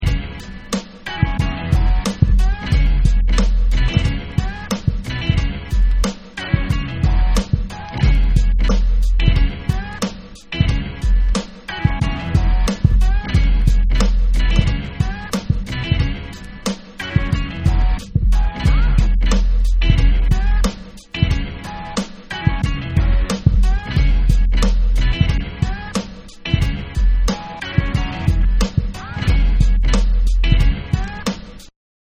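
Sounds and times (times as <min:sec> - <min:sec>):
instrumental music: 0:00.0 - 0:31.7.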